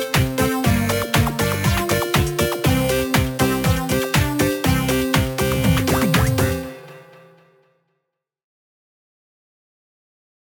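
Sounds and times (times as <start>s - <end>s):
8-bit mini-game music: 0.0s - 7.5s.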